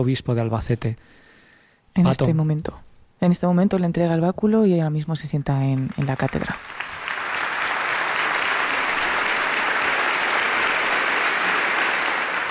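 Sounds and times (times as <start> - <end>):
speech: 0.0 - 1.2, 2.0 - 6.9
strong applause from audience: 5.6 - 12.4.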